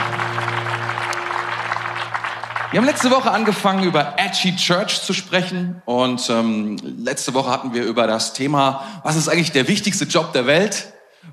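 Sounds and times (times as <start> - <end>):
audience applause for worship band: 0.0 - 4.6
speech: 2.7 - 11.3.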